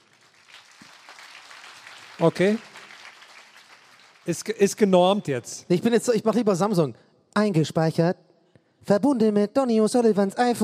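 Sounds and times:
audience applause: 0:00.0 - 0:05.0
speech: 0:02.2 - 0:02.7, 0:04.2 - 0:08.2, 0:08.9 - 0:10.6.

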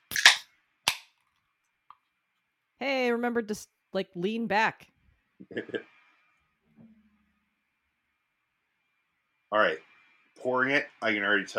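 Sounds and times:
beer can cracked open: 0:00.0 - 0:01.1
speech: 0:02.8 - 0:06.0, 0:09.5 - 0:11.5.

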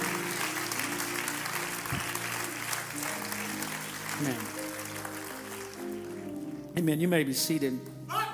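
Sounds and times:
audience clapping hands: 0:00.0 - 0:06.7
speech: 0:04.2 - 0:04.6, 0:06.8 - 0:08.2.

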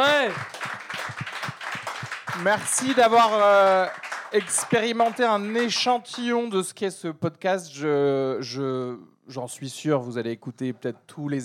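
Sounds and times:
live audience applauding: 0:00.0 - 0:06.3
speech: 0:02.4 - 0:11.4.

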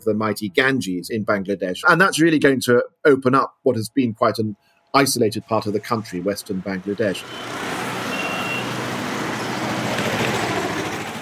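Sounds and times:
speech: 0:00.0 - 0:07.8
congested city road traffic in Dhaka: 0:04.6 - 0:11.1.

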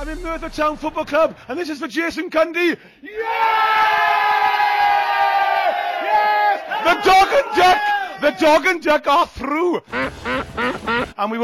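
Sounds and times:
speech: 0:00.0 - 0:03.6, 0:06.8 - 0:11.4
football fans cheering: 0:03.1 - 0:08.6.

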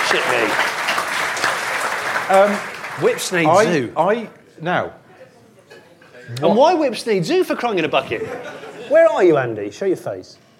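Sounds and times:
applause: 0:00.0 - 0:03.7
speech: 0:00.1 - 0:00.8, 0:02.3 - 0:05.0, 0:06.3 - 0:10.4
laughter: 0:07.9 - 0:09.4.

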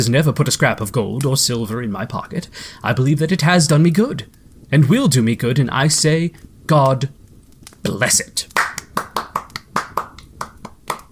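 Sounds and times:
speech: 0:00.0 - 0:07.2, 0:07.8 - 0:08.7
clerk applauding: 0:08.5 - 0:11.1.

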